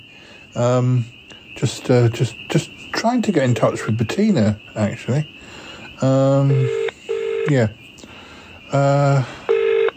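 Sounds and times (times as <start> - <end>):
speech: 0.5 - 5.4, 6.0 - 6.8, 7.4 - 7.8, 8.7 - 9.4
telephone dialing beeps: 6.5 - 7.6, 9.5 - 9.9.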